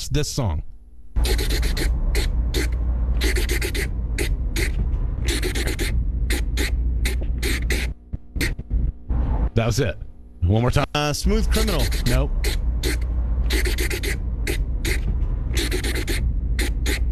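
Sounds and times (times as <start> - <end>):
low hum: 0.0 - 17.1
speech: 0.1 - 1.7, 9.6 - 12.6
marker scratching on paper: 1.2 - 8.7, 11.5 - 17.1.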